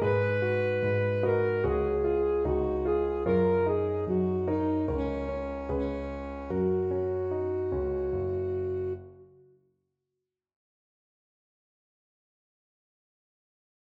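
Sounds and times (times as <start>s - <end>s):
alto saxophone: 0.0s - 9.4s.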